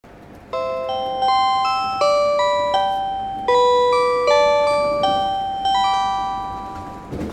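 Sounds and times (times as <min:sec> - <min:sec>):
chime: 0:00.6 - 0:07.3.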